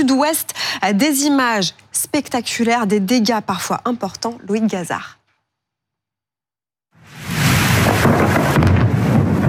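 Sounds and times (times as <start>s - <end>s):
speech: 0.1s - 5.2s
thunder rumbling during a thunderstorm in Saint-Jean-de-Luz: 7.0s - 9.4s.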